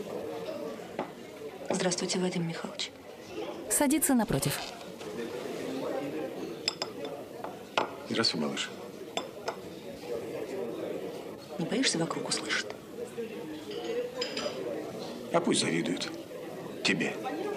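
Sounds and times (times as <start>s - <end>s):
steady murmur in a canteen: 0.0s - 17.5s
two people talking quietly: 0.0s - 17.5s
speech: 1.8s - 3.0s, 3.8s - 4.8s, 8.2s - 8.8s, 11.6s - 12.7s, 15.3s - 16.2s, 16.8s - 17.3s
dishes and cutlery clinking in a busy canteen: 6.4s - 8.1s, 9.1s - 9.7s, 13.5s - 15.1s.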